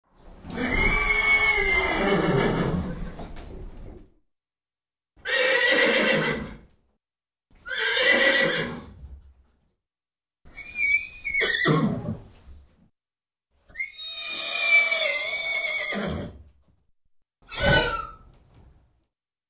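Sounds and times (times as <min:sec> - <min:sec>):
horse whinnying: 0:00.4 - 0:03.2, 0:05.2 - 0:06.6, 0:07.6 - 0:08.9, 0:10.5 - 0:12.3, 0:13.7 - 0:16.4, 0:17.4 - 0:18.3.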